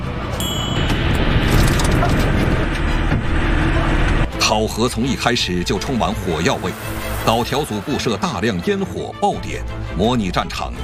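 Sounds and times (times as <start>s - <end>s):
armored vehicle accelerating through pyrotechnic smoke on a training course: 1.0s - 8.9s
speech: 4.6s - 10.8s.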